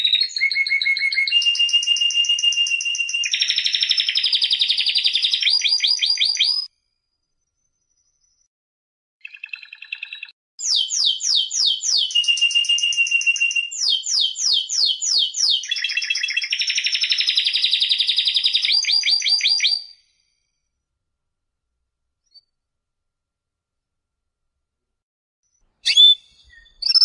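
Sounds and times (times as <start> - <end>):
canary song: 0.0 - 6.7, 9.2 - 20.2, 25.4 - 27.0.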